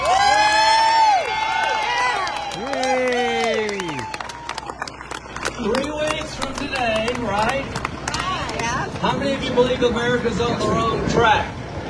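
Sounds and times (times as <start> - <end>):
crowd cheering and whooping: 0.0 - 6.2
applause: 0.0 - 8.9
speech: 9.6 - 11.5.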